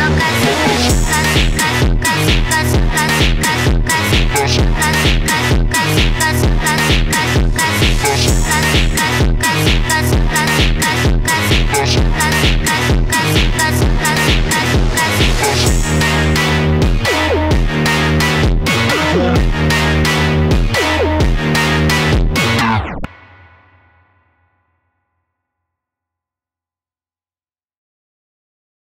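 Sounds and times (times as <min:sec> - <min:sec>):
Brazilian phonk remix: 0:00.0 - 0:23.1.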